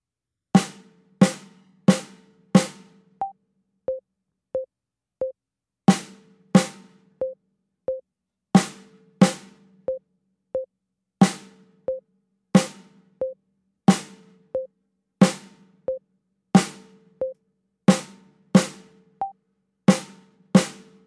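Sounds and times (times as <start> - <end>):
snare drum: 0.6 - 3.1, 5.9 - 7.1, 8.6 - 9.8, 11.2 - 11.7, 12.6 - 13.1, 13.9 - 14.4, 15.2 - 15.7, 16.6 - 17.2, 17.9 - 19.1, 19.9 - 21.0.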